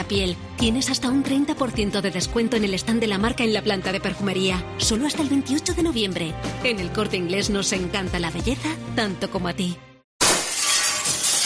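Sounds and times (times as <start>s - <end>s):
speech: 0.1s - 9.9s
glass shattering: 10.2s - 11.4s.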